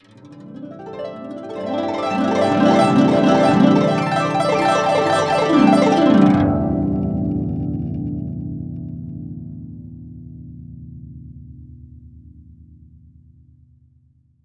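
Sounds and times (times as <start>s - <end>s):
guqin plucked: 0.0s - 8.0s.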